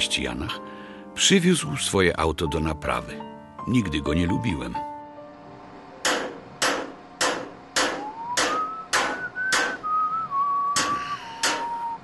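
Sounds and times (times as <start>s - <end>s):
speech: 0.0s - 4.9s
hammer blows: 6.0s - 12.0s
person whistling a tune: 8.0s - 12.0s.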